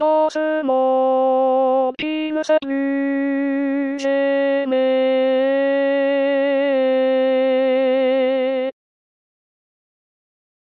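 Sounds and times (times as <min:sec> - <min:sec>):
hymn sung by altos: 0:00.0 - 0:08.8.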